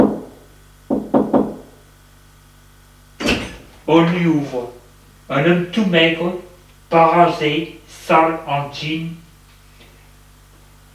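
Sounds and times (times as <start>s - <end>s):
knocking on a door: 0.0s - 0.3s, 0.9s - 1.7s
speech: 3.9s - 9.2s.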